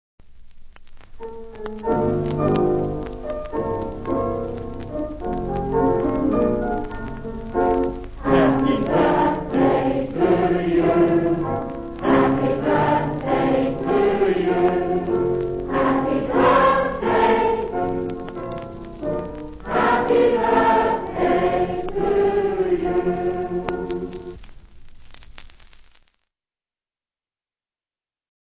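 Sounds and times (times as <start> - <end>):
birthday song: 1.8 - 24.4.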